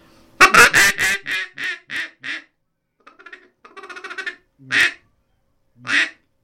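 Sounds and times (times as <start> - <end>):
polycarbonate duck call blown: 0.4 - 5.0, 5.8 - 6.2.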